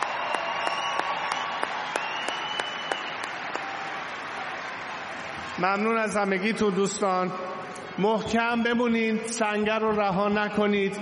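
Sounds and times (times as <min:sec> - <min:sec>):
audience applause for a performer at an evening show: 0:00.0 - 0:06.0
speech: 0:05.6 - 0:10.9.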